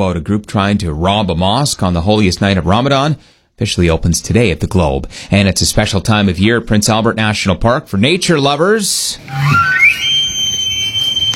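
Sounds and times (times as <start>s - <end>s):
speech: 0.0s - 10.2s
elk bugling: 9.3s - 11.3s.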